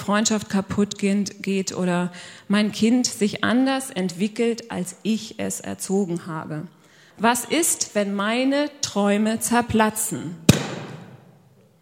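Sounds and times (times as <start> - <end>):
speech: 0.0 - 10.6
pink balloon bursting: 10.5 - 11.4.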